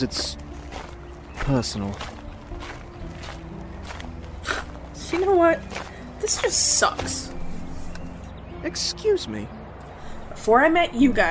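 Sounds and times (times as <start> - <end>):
speech: 0.0 - 0.4, 1.5 - 2.2, 5.1 - 7.4, 8.6 - 9.6, 10.4 - 11.2
footsteps of people walking along: 0.0 - 8.3.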